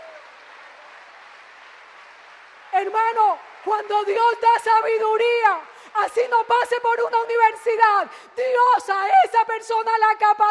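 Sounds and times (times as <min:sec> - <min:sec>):
church congregation clapping in praise during a sermon: 0:00.0 - 0:07.8
speech: 0:02.8 - 0:10.5.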